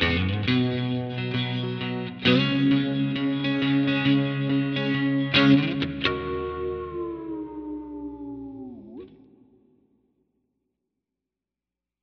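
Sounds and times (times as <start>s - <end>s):
guitar playing a verse: 0.0s - 9.5s.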